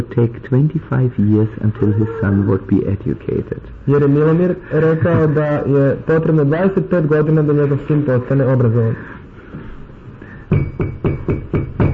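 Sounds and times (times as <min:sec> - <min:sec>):
speech: 0:00.0 - 0:09.2
knocking on a door: 0:10.5 - 0:11.9.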